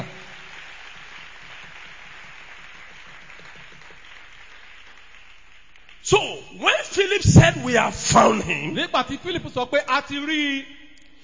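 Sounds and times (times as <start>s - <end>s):
audience clapping: 0.0s - 6.4s
speech: 7.5s - 10.8s.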